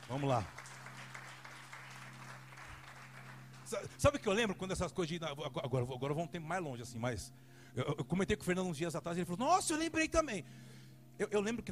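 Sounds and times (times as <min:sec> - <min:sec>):
crowd applauding: 0:00.0 - 0:04.4
speech: 0:00.1 - 0:00.6, 0:03.7 - 0:11.7.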